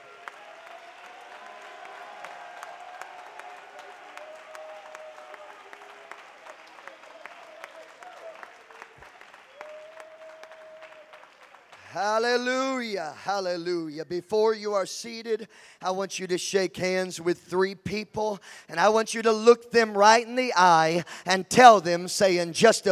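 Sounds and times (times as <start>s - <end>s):
audience shouting: 0.0s - 8.9s
audience clapping: 0.0s - 12.2s
speech: 12.0s - 22.8s.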